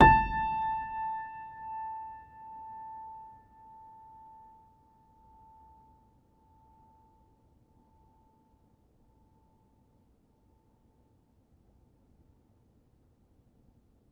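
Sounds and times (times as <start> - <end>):
upright piano: 0.0 - 2.9.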